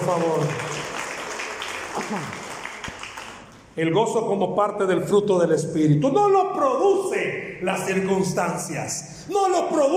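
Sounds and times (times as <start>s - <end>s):
speech: 0.0s - 1.0s, 2.0s - 2.4s, 3.8s - 9.9s
audience applause: 0.0s - 3.5s.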